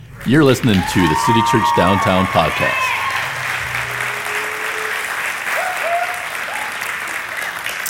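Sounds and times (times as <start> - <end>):
large crowd applauding: 0.0 - 7.8
speech: 0.2 - 3.1
whoops and whistles: 0.8 - 6.9.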